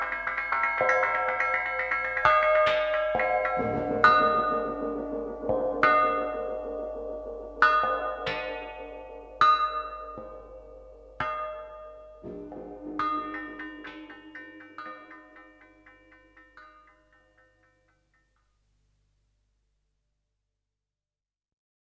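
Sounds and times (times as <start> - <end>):
bells ringing: 0.0 - 8.9, 12.2 - 17.2
group of gongs ringing: 3.3 - 9.2, 12.2 - 16.7.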